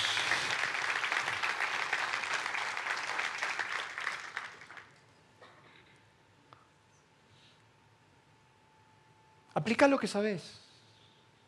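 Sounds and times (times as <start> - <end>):
audience applauding: 0.0 - 5.0
speech: 9.6 - 10.6.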